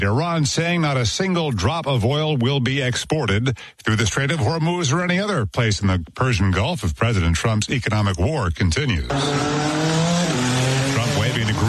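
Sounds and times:
speech: 0:00.0 - 0:10.0
Indy-style race car engines roaring at the Freedom 250 Grand Prix: 0:09.1 - 0:11.6.

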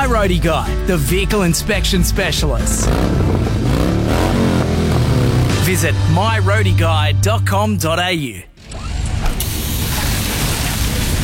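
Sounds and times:
speech: 0:00.1 - 0:04.5, 0:05.7 - 0:08.5
burst hydraulic hose releasing a rushing hiss: 0:08.9 - 0:11.2.

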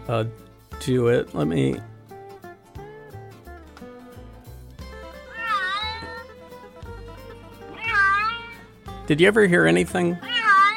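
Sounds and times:
speech: 0:00.1 - 0:01.9, 0:09.1 - 0:10.3
cats meowing in a car: 0:05.3 - 0:06.3, 0:07.7 - 0:08.7, 0:10.2 - 0:10.7.

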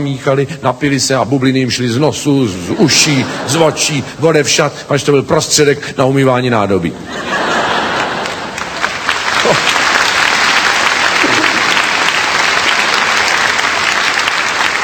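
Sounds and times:
speech: 0:00.0 - 0:07.8, 0:09.5 - 0:09.7
laughter: 0:02.7 - 0:04.2, 0:07.0 - 0:10.2
audience applauding: 0:07.5 - 0:14.8.

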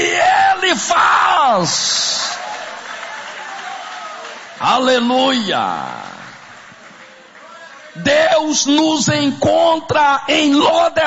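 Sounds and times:
speech: 0:00.7 - 0:02.1, 0:04.6 - 0:06.1, 0:08.0 - 0:11.0
church congregation applauding during a worship service: 0:01.4 - 0:08.8.

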